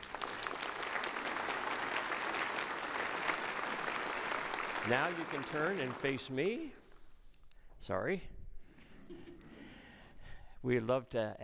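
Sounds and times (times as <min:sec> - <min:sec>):
audience applause: 0:00.0 - 0:06.6
speech: 0:04.9 - 0:06.8, 0:07.8 - 0:08.3, 0:10.6 - 0:11.4.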